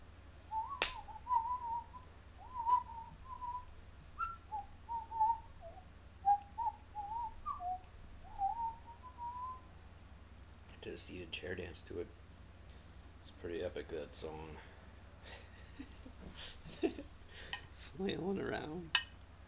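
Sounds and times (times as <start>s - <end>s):
steady low hum: 0.0s - 9.7s
person whistling a waltz melody outdoors in the woods: 0.5s - 9.7s
speech: 11.0s - 12.2s, 13.4s - 14.7s, 18.0s - 19.0s
laughter: 15.2s - 17.2s.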